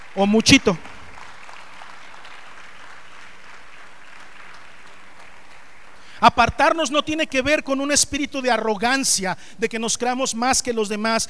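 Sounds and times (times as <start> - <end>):
audience applause: 0.0 - 6.2
speech: 0.2 - 0.9, 6.2 - 11.2.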